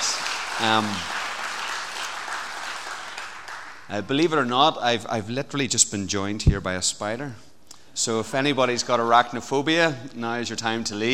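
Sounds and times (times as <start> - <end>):
audience round of applause: 0.0 - 3.9
speech: 0.6 - 1.2, 3.9 - 11.1.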